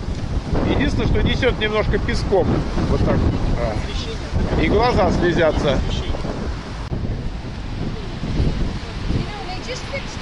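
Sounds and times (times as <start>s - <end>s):
strong wind buffeting the microphone: 0.0s - 10.1s
speech: 0.8s - 6.2s.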